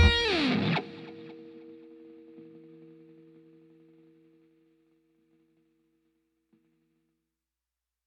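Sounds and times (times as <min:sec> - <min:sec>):
lofi cover music: 0:00.0 - 0:01.3.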